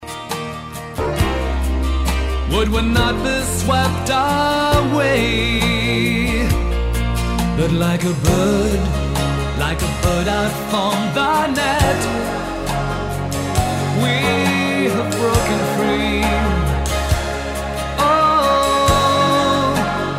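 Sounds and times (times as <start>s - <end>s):
piano: 0.0s - 20.1s.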